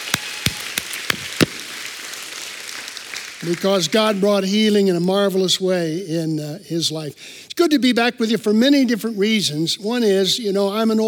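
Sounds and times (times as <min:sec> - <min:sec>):
audience applauding: 0:00.0 - 0:04.5
speech: 0:03.4 - 0:11.0.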